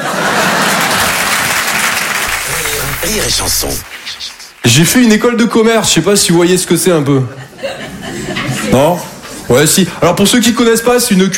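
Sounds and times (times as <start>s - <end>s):
laughter: 0.0s - 1.5s, 7.1s - 8.7s
audience applause: 0.0s - 5.0s
speech: 3.1s - 7.7s, 8.7s - 11.3s.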